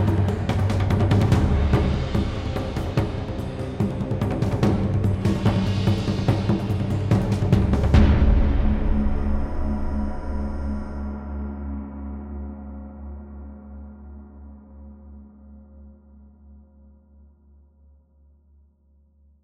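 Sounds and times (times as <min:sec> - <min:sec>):
epic cinematic drums: 0:00.0 - 0:11.3.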